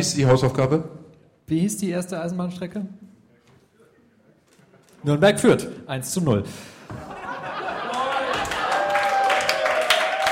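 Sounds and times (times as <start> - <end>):
speech: 0.0 - 3.1, 5.0 - 7.0
laughter: 6.9 - 9.4
live audience applause in Dortmund: 7.6 - 10.3.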